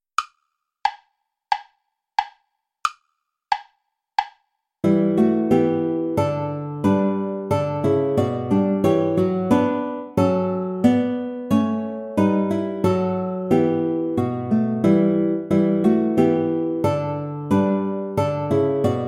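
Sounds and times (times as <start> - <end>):
play-along backing track without guitar: 3.5 - 19.0.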